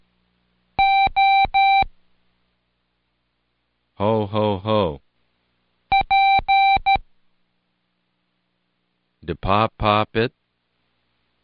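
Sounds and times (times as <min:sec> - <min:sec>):
Morse code beeps: 0:00.8 - 0:01.9, 0:05.9 - 0:07.0
speech: 0:09.3 - 0:10.4.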